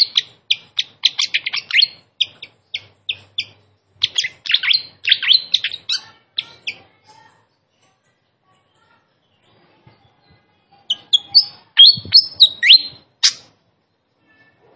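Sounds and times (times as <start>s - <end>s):
Malaysian pied fantail singing with chirps and trills: 0.0s - 7.0s, 10.7s - 14.7s.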